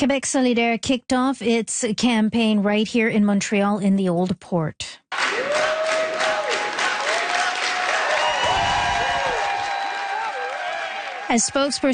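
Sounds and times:
speech: 0.0s - 5.4s, 11.3s - 11.9s
supporters clapping and whooping: 5.1s - 11.9s.

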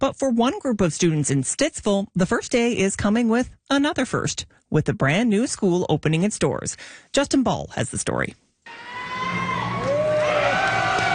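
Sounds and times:
speech: 0.0s - 9.4s
crowd cheering and whooping at a school ribbon cutting: 8.7s - 11.1s
high shouts: 8.7s - 11.1s.

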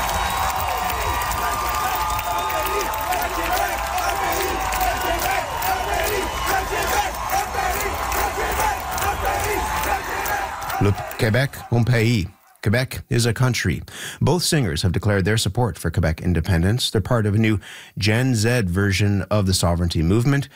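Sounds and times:
concert crowd applause: 0.0s - 12.6s
speech: 10.8s - 20.5s.

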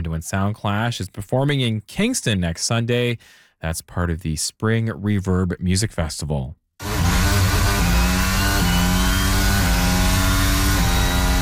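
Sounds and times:
speech: 0.1s - 6.6s
Formula One race car engine revving through gears: 6.8s - 11.3s.

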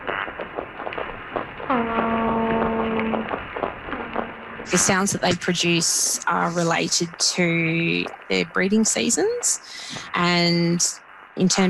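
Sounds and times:
faint underwater clicks and crackle: 0.0s - 4.7s
speech: 1.7s - 2.0s, 4.7s - 11.6s
toadfish boat whistle call: 1.7s - 3.3s.

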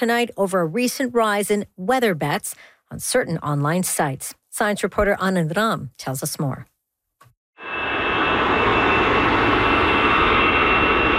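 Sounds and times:
speech: 0.0s - 6.7s
jet aircraft taking off at Paris's biggest airport: 7.6s - 11.1s.

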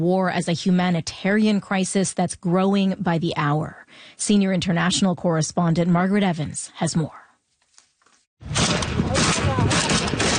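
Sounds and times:
speech: 0.0s - 7.2s
explosions in civil war: 8.4s - 10.3s
heavy gunfire in civil war: 8.4s - 10.3s.

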